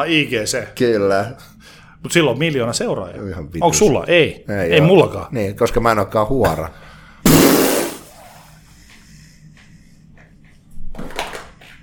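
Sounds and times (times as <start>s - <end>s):
speech: 0.0s - 6.8s
fart: 7.3s - 8.4s.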